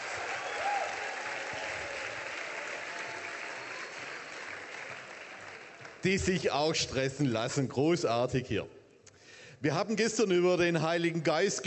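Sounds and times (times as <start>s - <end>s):
audience applause: 0.0s - 6.4s
speech: 6.0s - 8.8s, 9.6s - 11.6s.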